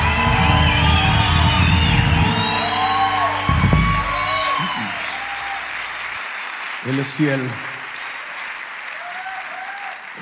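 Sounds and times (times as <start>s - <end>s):
whoops and shouts: 0.0s - 5.8s, 9.0s - 10.0s
large crowd cheering and applauding at night: 0.0s - 10.1s
speech: 6.9s - 7.7s.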